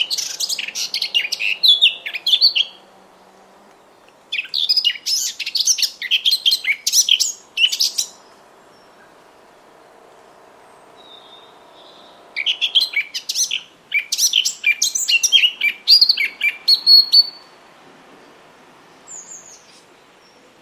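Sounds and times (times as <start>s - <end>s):
bird calling in high chirps with buzzy trills and tweets: 0.0s - 2.9s, 3.9s - 9.2s, 10.7s - 17.6s.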